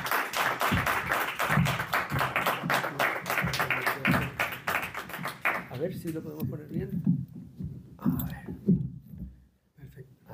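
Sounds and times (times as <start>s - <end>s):
audience applause for the speaker: 0.0s - 6.2s
speech: 5.8s - 7.2s.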